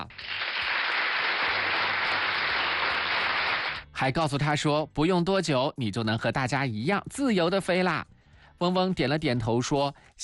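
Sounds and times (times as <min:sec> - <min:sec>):
applause: 0:00.0 - 0:03.8
speech: 0:04.0 - 0:10.2.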